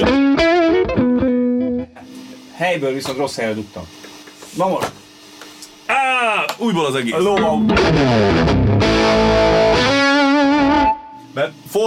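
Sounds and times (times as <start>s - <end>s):
distorted electric guitar tone through effects unit: 0.0s - 2.5s, 7.2s - 11.3s
speech: 2.6s - 4.0s, 4.6s - 5.0s, 6.1s - 9.5s, 11.4s - 11.8s.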